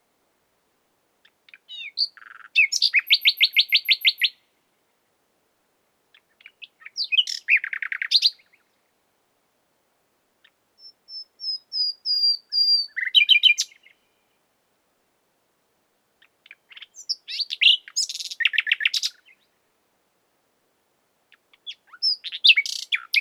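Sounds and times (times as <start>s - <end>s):
common nightingale singing: 1.5s - 4.4s, 6.2s - 8.8s, 10.4s - 14.4s, 16.2s - 19.5s, 21.3s - 23.1s.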